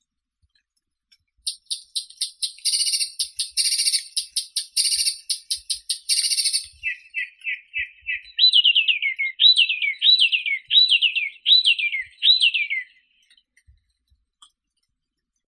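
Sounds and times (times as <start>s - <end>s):
Blyth's reed warbler Acrocephalus dumetorum singing: 1.5s - 13.2s.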